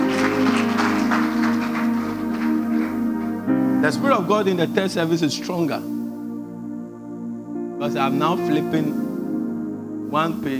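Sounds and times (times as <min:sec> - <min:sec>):
audience clapping: 0:00.0 - 0:03.6
low keyboard or organ drone: 0:00.0 - 0:10.5
speech: 0:03.8 - 0:06.0, 0:07.8 - 0:09.1, 0:10.1 - 0:10.5.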